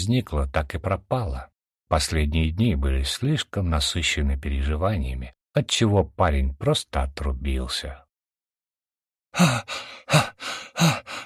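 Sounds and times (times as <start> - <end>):
speech: 0.0 - 8.0, 9.3 - 11.2
woman breathing heavily after running: 9.4 - 11.2.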